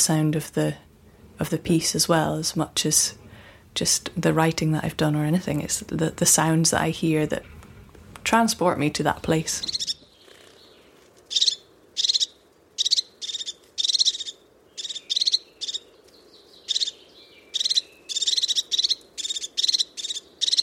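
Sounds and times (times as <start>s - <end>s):
speech: 0.0s - 7.6s, 8.2s - 9.9s
crested tit call: 8.5s - 10.7s, 11.3s - 20.6s.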